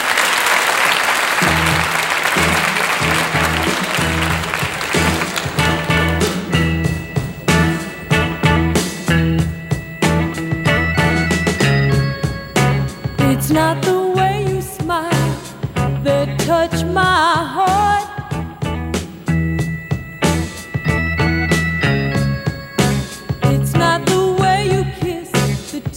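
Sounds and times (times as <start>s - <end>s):
audience applause welcoming a rock band: 0.0s - 9.4s
rock band instruments playing: 0.0s - 25.9s
repeating low bass pattern: 1.4s - 25.9s.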